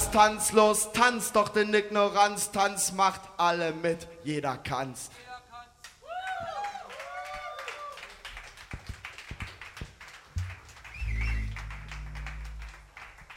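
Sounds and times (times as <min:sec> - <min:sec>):
speech: 0:00.2 - 0:05.2
audience applause: 0:06.6 - 0:13.3.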